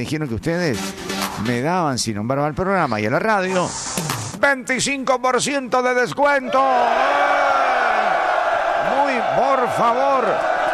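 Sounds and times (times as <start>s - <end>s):
speech: 0.0s - 7.4s, 9.2s - 10.5s
people shouting in a shop: 6.5s - 10.7s.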